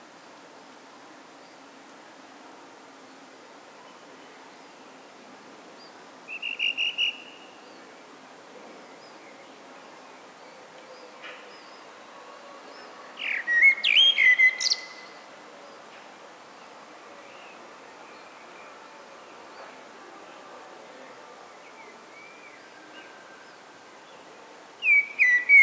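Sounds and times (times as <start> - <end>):
background hiss: 0.0 - 25.6
Common blackbird whistling: 13.2 - 15.0, 24.8 - 25.6.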